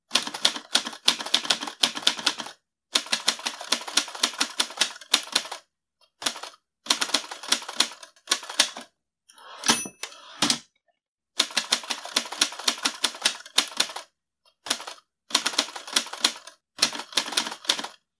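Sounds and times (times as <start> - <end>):
typewriter typing: 0.1 - 5.6, 6.2 - 8.9, 11.4 - 14.1, 14.7 - 18.0.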